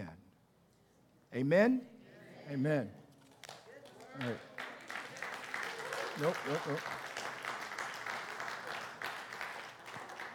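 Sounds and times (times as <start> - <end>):
speech: 1.3 - 1.9, 2.5 - 3.0, 4.2 - 4.5, 6.2 - 7.0
audience applause: 4.0 - 10.3.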